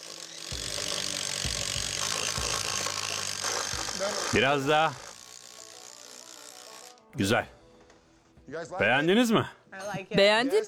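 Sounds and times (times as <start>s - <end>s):
power drill running: 0.0s - 7.2s
speech: 4.0s - 5.0s, 7.2s - 7.6s, 8.5s - 10.6s.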